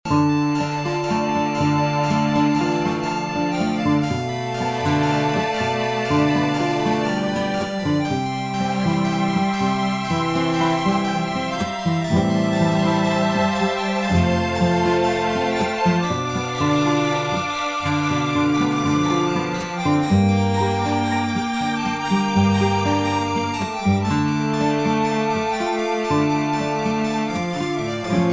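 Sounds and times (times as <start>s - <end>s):
dramatic music loop: 0.1s - 28.3s.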